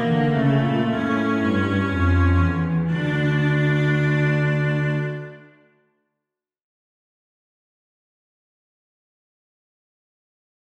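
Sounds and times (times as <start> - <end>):
cello duet: 0.0 - 5.7.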